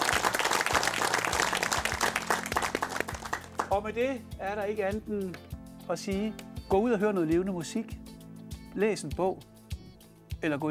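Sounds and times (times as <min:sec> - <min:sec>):
studio audience applause: 0:00.0 - 0:03.8
speech: 0:03.7 - 0:08.0, 0:08.7 - 0:09.5, 0:10.4 - 0:10.6.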